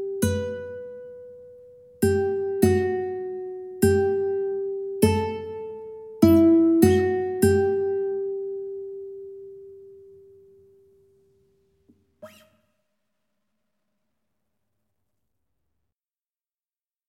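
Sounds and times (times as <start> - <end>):
ukulele duet: 2.0 - 8.9.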